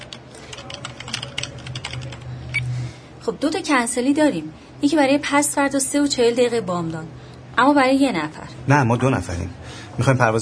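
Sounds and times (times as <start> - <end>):
clerk typing on a computer keyboard searching for flights: 0.0 - 2.3
low steady hum: 0.0 - 10.4
speech: 3.2 - 10.4.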